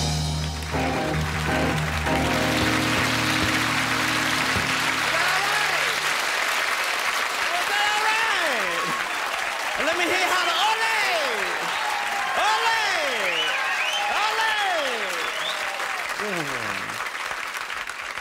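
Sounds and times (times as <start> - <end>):
crowd clapping at a festival: 0.1 - 18.1
shrill whoops and whistles at a festival: 13.2 - 14.3, 15.0 - 16.0.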